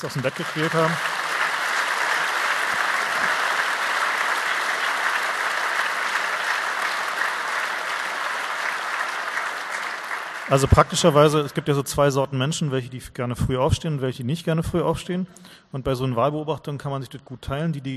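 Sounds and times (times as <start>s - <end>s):
speech: 0.0s - 1.2s, 10.5s - 17.9s
audience applause: 0.0s - 11.6s.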